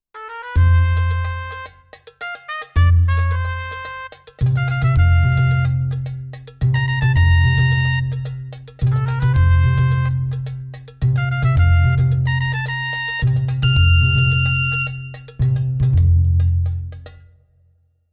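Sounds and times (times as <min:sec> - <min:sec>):
Latin club music: 0:00.2 - 0:17.2.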